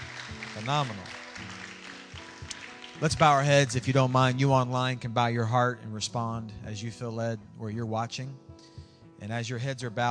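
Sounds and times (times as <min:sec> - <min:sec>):
crowd clapping hands in praise: 0:00.0 - 0:04.4
speech: 0:00.6 - 0:01.2, 0:03.0 - 0:08.4, 0:09.2 - 0:10.1.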